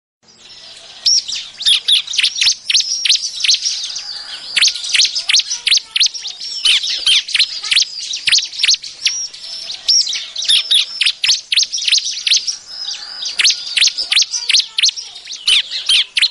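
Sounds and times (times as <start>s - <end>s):
Bar-winged prinia calls used as a trapping lure: 0.2s - 16.2s.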